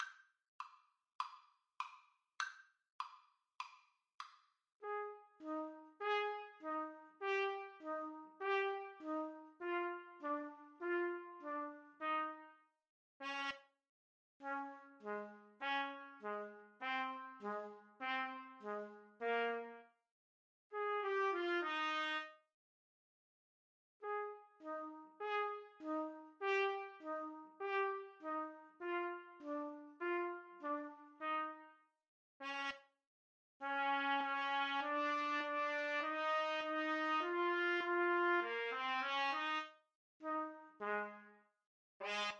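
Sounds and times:
trumpet duet: 4.8s - 12.6s, 13.2s - 13.6s, 14.4s - 19.9s, 20.8s - 22.4s, 24.0s - 31.8s, 32.4s - 32.8s, 33.6s - 41.4s, 42.0s - 42.3s.

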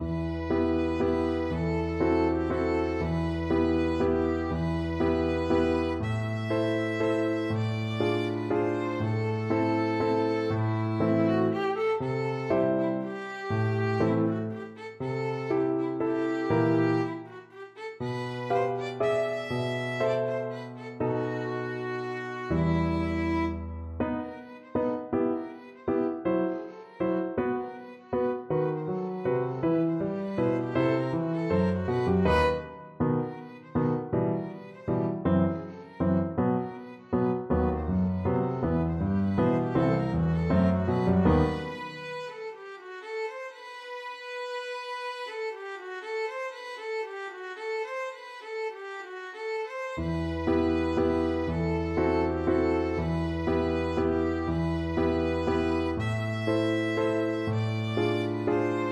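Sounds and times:
violin waltz: 0.0s - 58.8s.

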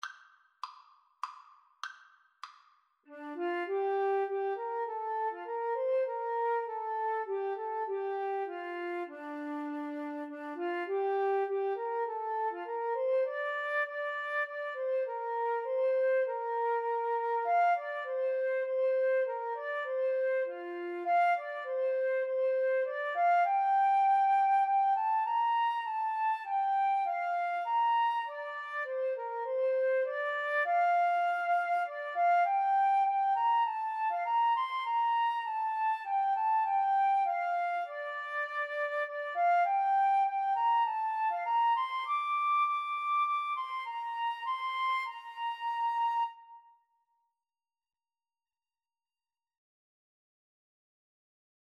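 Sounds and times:
flute and cello duet: 3.1s - 46.8s.

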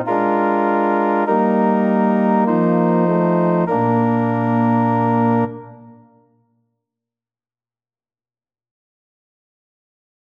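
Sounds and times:
organ playing a hymn: 0.0s - 6.0s.

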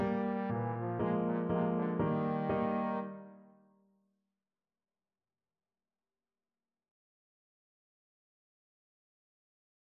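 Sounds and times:
trombone: 0.0s - 3.3s
waltz music: 0.0s - 3.4s.

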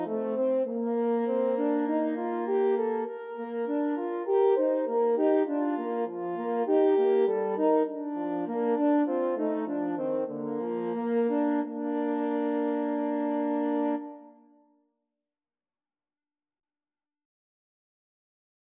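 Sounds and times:
French horn trio: 0.0s - 14.2s.

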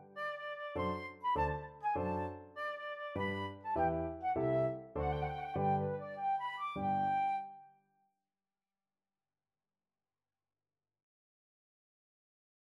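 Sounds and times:
flute melody: 0.0s - 7.8s.

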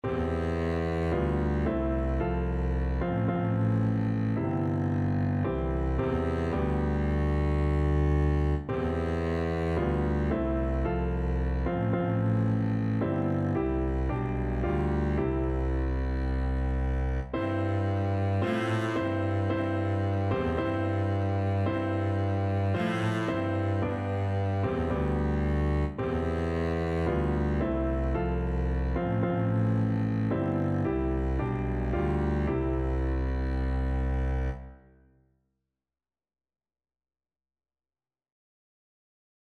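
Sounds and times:
double bass playing a hymn: 0.0s - 34.7s.

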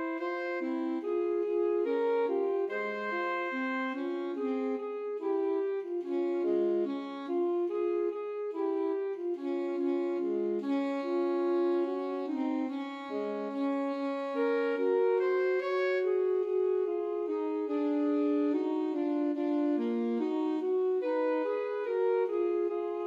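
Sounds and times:
alto saxophone duet: 0.0s - 23.0s.

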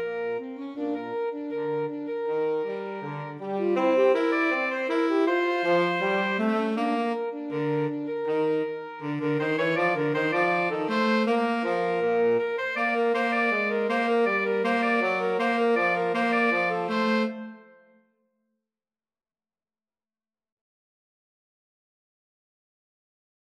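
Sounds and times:
alto and tenor saxophone duet: 0.0s - 17.9s.

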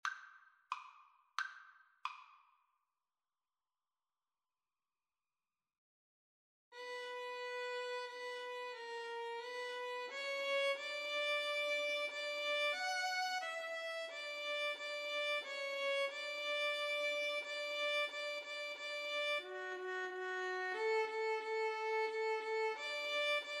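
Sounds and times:
violin pavane: 6.8s - 23.5s.

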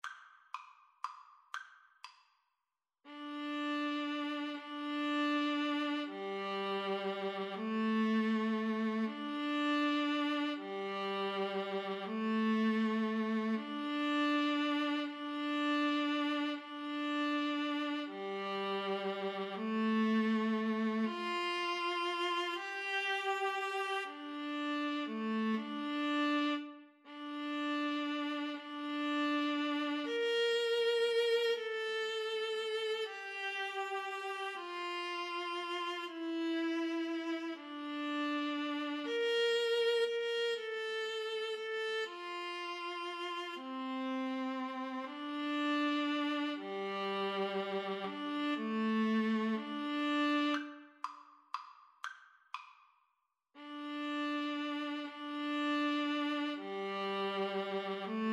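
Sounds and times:
viola duet: 3.1s - 51.2s, 53.6s - 58.3s.

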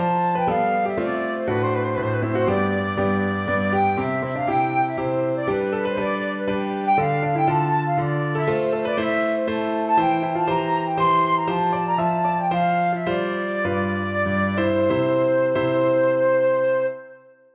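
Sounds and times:
flute playing a chaconne: 0.0s - 17.5s.

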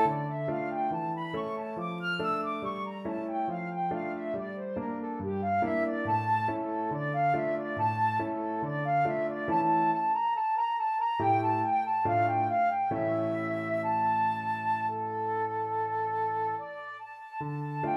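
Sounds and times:
flute playing a gavotte: 0.0s - 17.9s.

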